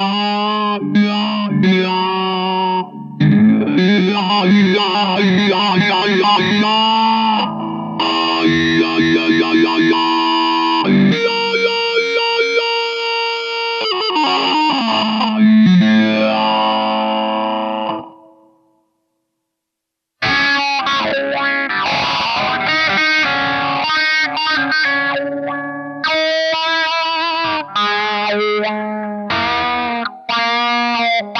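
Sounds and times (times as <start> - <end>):
electric guitar played through a wah effect with distortion and chorus: 0.0 - 18.8, 20.2 - 31.3.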